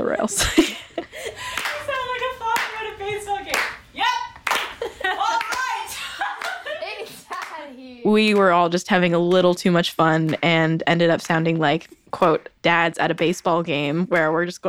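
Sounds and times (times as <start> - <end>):
laughter: 0.0 - 3.3, 4.5 - 7.9
speech: 0.1 - 0.7, 8.1 - 14.6
layered hand clap track: 1.5 - 5.7, 6.4 - 7.6, 8.2 - 11.6, 12.2 - 14.5.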